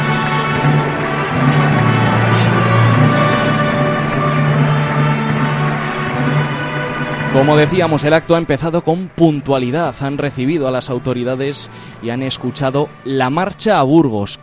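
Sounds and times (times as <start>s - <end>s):
applause in a church cloister: 0.0s - 12.8s
speech: 7.4s - 14.4s.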